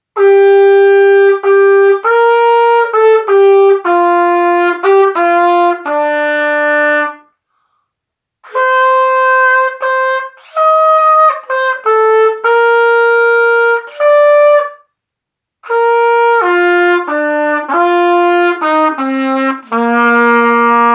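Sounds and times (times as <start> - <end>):
trumpet playing a Christmas carol: 0.2 - 7.3, 8.4 - 14.9, 15.6 - 20.9.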